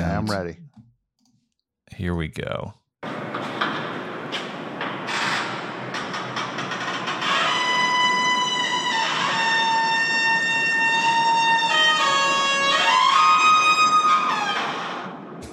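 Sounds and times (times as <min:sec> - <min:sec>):
speech: 0:00.2 - 0:00.6, 0:01.9 - 0:03.2
creaking door sounding like a trumpet: 0:03.1 - 0:15.5.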